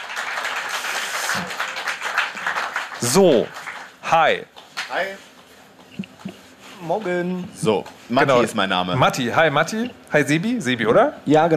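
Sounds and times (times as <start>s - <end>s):
audience clapping: 0.0s - 5.2s
speech: 1.3s - 1.6s, 3.0s - 5.3s, 6.8s - 11.5s.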